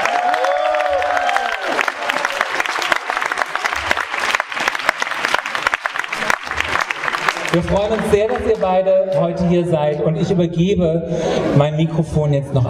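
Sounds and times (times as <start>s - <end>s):
audience applause: 0.0s - 8.9s
speech: 7.6s - 12.6s.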